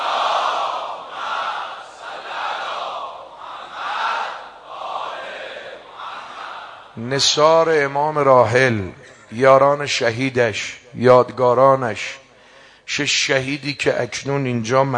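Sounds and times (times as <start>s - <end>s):
crowd chanting salawat at a martyrs' burial gathering: 0.0s - 7.0s
speech: 7.0s - 12.2s, 12.9s - 14.9s.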